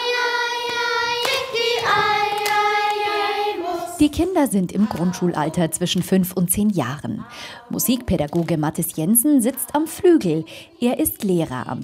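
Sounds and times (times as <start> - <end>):
children clapping hands and slapping thighs: 0.3 - 3.4
speech: 4.0 - 11.8.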